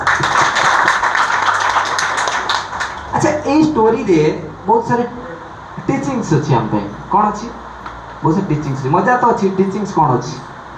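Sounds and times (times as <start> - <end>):
clapping: 0.0 - 3.1
speech: 3.5 - 5.2, 5.8 - 7.6, 8.2 - 10.5.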